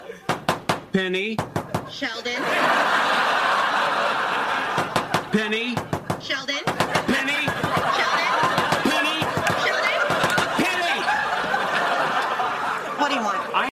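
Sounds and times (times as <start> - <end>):
knocking: 0.3 - 2.0, 4.7 - 10.8
laughter: 1.8 - 5.8, 6.8 - 13.7.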